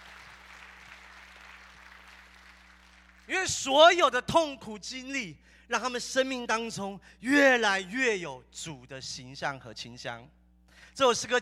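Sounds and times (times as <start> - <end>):
audience clapping: 0.0 - 3.3
speech: 3.3 - 10.4, 11.0 - 11.4.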